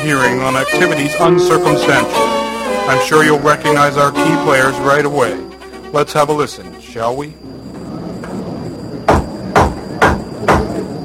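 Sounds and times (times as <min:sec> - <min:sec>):
speech: 0:00.0 - 0:07.5
shoe banging on a table: 0:09.1 - 0:10.7.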